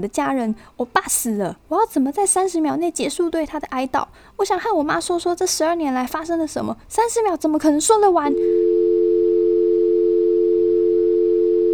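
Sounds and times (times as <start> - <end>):
speech: 0.0 - 8.8
phone busy tone after hang-up: 8.3 - 11.7.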